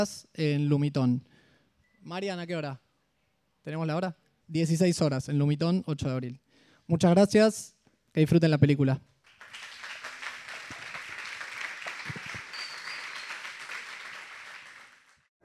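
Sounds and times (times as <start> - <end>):
speech: 0.0 - 1.3, 2.0 - 2.8, 3.6 - 9.1
audience applause: 9.3 - 15.2.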